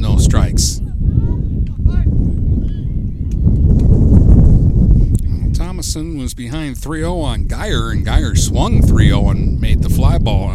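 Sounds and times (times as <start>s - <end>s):
gusty wind buffeting the microphone during a regional baseball game: 0.0s - 10.5s
speech: 6.0s - 10.5s.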